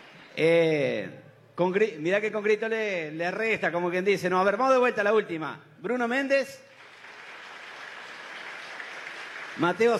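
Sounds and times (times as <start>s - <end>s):
speech: 0.4s - 6.7s, 9.6s - 9.9s
audience applause: 6.7s - 9.9s.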